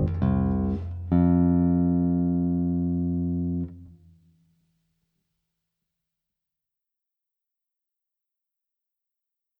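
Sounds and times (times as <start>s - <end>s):
two bass guitars playing a waltz: 0.0s - 3.9s.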